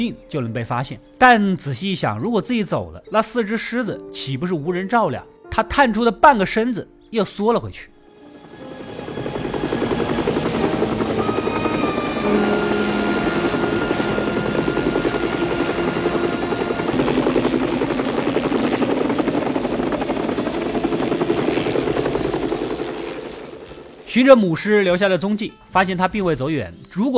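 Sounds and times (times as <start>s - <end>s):
speech: 0.0s - 7.9s, 24.2s - 27.1s
helicopter propeller whirring: 7.6s - 26.1s.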